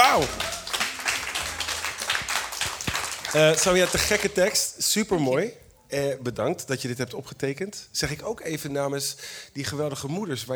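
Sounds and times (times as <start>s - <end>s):
audience applause: 0.0s - 4.7s
speech: 0.2s - 0.5s, 3.3s - 10.5s.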